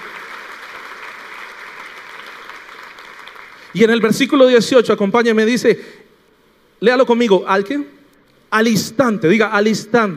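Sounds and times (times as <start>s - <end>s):
crowd applauding: 0.0s - 4.1s
speech: 3.7s - 6.0s, 6.8s - 10.1s.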